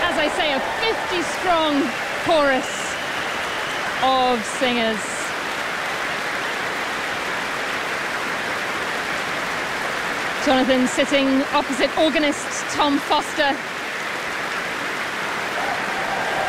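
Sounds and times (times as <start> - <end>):
concert audience cheering: 0.0 - 7.2, 15.4 - 16.4
large concert audience clapping: 0.0 - 16.4
speech: 0.3 - 2.8, 4.0 - 5.1, 10.4 - 13.7.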